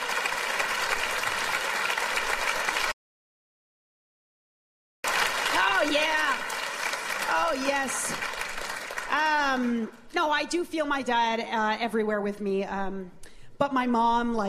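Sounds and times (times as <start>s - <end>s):
audience applause: 0.0s - 3.0s, 5.0s - 9.9s
speech: 7.6s - 8.3s, 9.2s - 14.4s.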